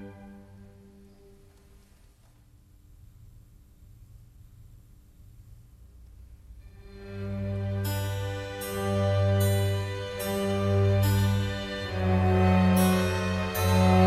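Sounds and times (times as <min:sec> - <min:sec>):
oboe, strings and continuo sinfonia in G: 0:00.0 - 0:01.9, 0:06.6 - 0:14.0.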